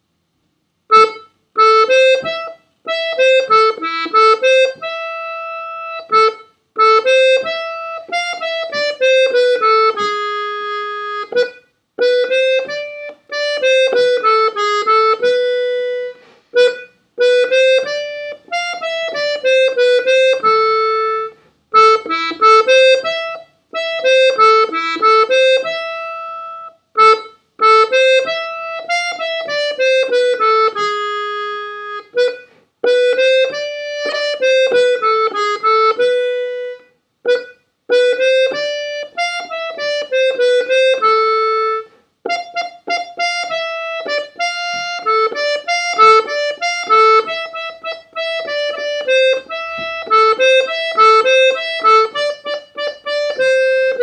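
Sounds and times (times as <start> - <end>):
slow accordion piece: 0.8 - 54.0.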